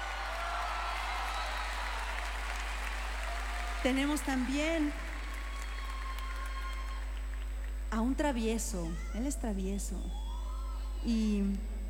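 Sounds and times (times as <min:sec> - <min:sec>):
audience applause: 0:00.0 - 0:07.8
speech: 0:03.8 - 0:05.1, 0:07.9 - 0:10.3, 0:11.0 - 0:11.7.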